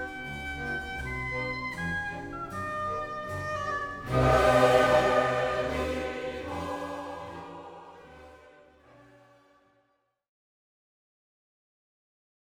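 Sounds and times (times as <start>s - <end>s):
baroque orchestra playing live introduction: 0.0s - 9.3s.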